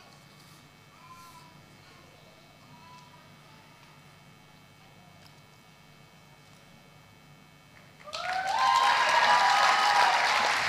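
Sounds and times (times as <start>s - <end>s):
audience applause: 8.0s - 10.6s
cheers and whoops: 8.0s - 10.6s.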